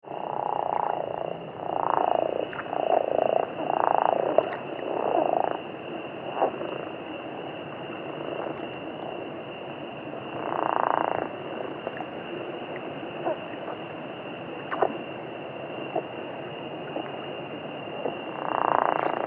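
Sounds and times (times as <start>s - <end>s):
steady high hum: 0.0s - 19.2s
Chiricahua leopard frog rattling snores: 0.1s - 6.9s, 10.4s - 12.0s, 13.2s - 13.8s, 15.9s - 16.2s, 17.9s - 19.2s.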